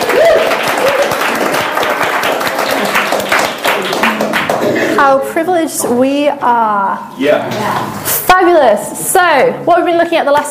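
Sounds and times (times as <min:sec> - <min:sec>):
audience applause: 0:00.0 - 0:05.0
speech: 0:05.0 - 0:10.4.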